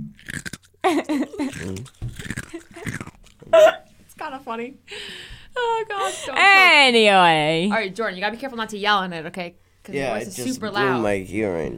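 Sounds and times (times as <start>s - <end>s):
chewing ice: 0.0s - 3.5s
speech: 0.9s - 11.7s.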